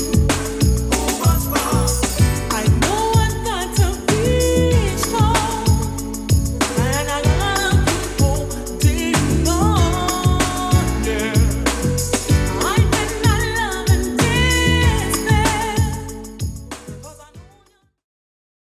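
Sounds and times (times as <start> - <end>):
80s drum machine beat at 95 BPM: 0.0 - 17.2.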